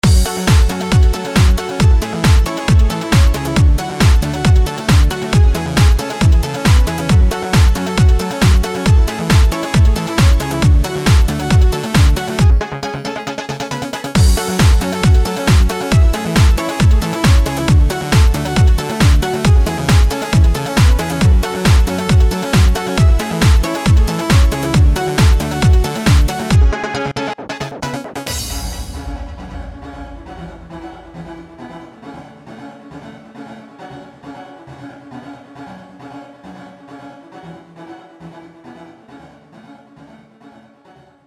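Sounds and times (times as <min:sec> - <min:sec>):
trance arpeggio: 0:00.0 - 0:31.7.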